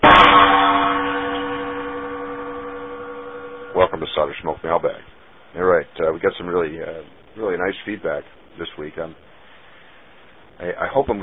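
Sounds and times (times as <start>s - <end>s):
gong being struck: 0.0s - 4.3s
speech: 4.0s - 9.3s, 10.6s - 11.2s.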